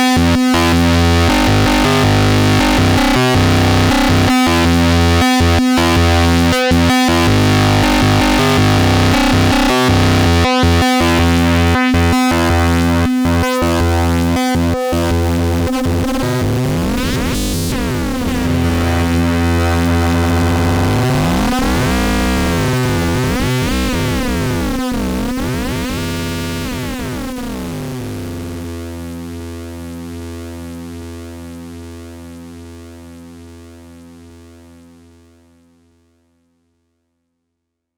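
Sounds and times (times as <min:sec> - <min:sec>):
MOOG MAVIS synthesizer fuzzy dry signal: 0:00.0 - 0:29.0.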